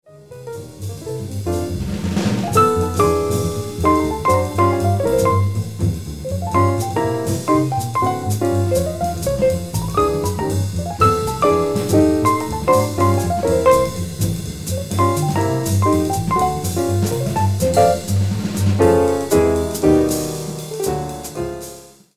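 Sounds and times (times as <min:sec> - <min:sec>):
jazz trio playing the out head: 0:00.1 - 0:22.1.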